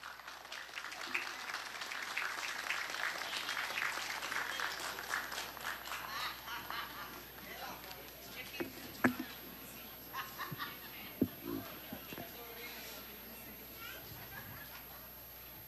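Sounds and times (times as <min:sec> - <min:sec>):
audience applause: 0:00.0 - 0:08.0
laughter: 0:04.4 - 0:12.6, 0:13.4 - 0:15.5.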